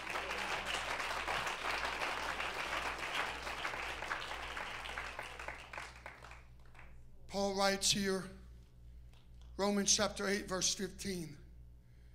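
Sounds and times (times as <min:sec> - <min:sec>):
audience clapping hands: 0:00.0 - 0:07.0
speech: 0:07.4 - 0:08.4, 0:09.6 - 0:11.4.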